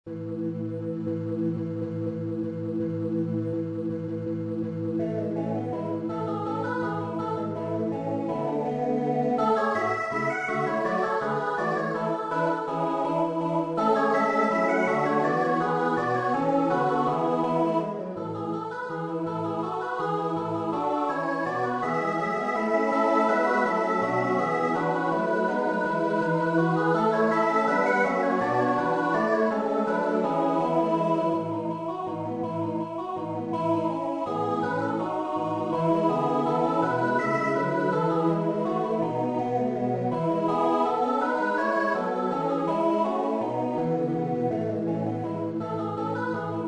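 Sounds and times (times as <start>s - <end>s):
MIDI music: 0.1s - 46.6s.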